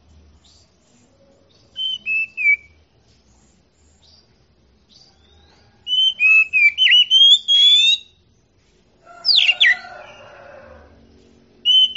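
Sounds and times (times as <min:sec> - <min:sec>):
Oriental magpie-robin singing: 0:00.4 - 0:02.8, 0:03.9 - 0:08.2, 0:09.2 - 0:10.2, 0:11.6 - 0:11.9.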